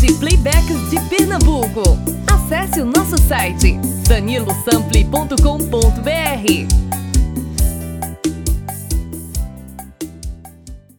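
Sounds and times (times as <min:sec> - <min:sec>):
female voice: 0:00.0 - 0:06.7.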